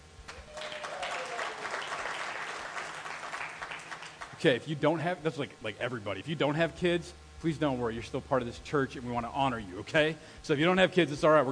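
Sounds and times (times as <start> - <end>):
crowd applauding: 0.3 - 4.4
speech: 4.4 - 11.5.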